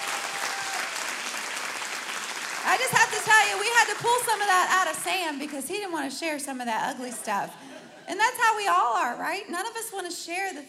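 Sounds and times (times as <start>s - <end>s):
audience applause: 0.0s - 4.8s
speech: 2.7s - 10.6s.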